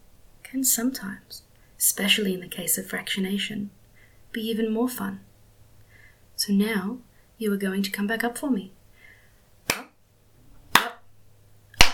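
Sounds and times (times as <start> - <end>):
speech: 0.5 - 5.3, 6.4 - 8.8
a single hand clap: 9.7 - 10.0, 10.7 - 11.0, 11.8 - 11.9.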